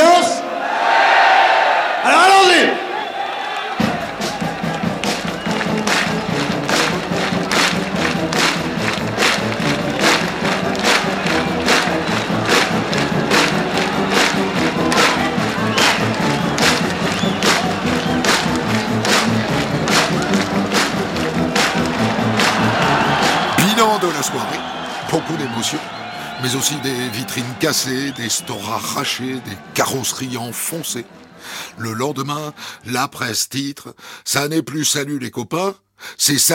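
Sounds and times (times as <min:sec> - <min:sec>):
packed concert crowd cheering and roaring: 0:00.0 - 0:33.0
rhythmic pounding of claps or stomps: 0:03.8 - 0:32.6
speech: 0:26.5 - 0:27.0, 0:27.6 - 0:36.5.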